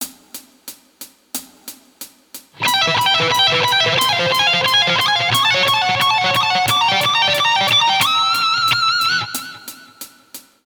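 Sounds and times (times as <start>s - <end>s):
guitar licks: 2.6s - 10.2s.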